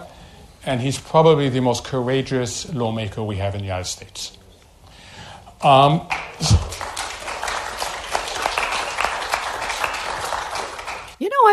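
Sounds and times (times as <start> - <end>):
speech: 0.7 - 4.4, 5.6 - 6.6
tepid audience clapping: 5.9 - 11.2.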